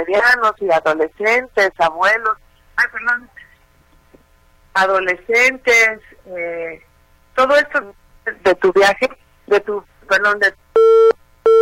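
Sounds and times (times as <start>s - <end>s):
speech: 0.0s - 3.5s, 4.8s - 11.5s
busy tone after a phone call drops: 10.8s - 11.5s.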